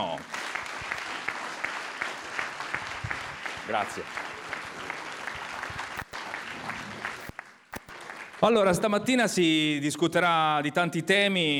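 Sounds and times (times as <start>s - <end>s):
audience applause: 0.0s - 8.8s
speech: 3.7s - 4.3s, 8.4s - 11.5s.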